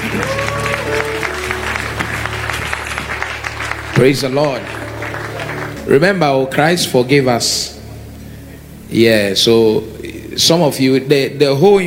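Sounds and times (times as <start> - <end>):
audience applause: 0.0 - 6.4
speech: 0.1 - 0.6, 4.0 - 4.8, 5.9 - 7.7, 8.9 - 11.8.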